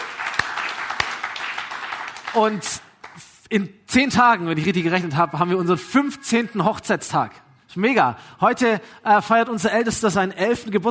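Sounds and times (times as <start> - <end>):
crowd applause: 0.0 - 3.2
speech: 2.3 - 10.9.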